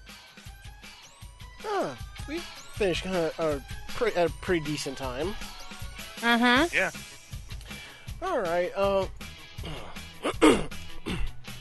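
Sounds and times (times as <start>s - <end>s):
speech: 1.7s - 5.5s, 6.2s - 7.1s, 8.2s - 9.8s
person clearing throat: 9.6s - 11.4s.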